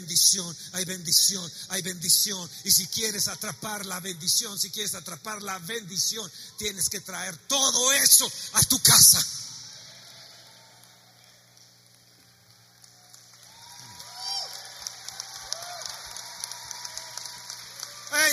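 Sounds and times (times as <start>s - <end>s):
speech: 0.0s - 9.4s
audience applauding: 10.0s - 18.3s.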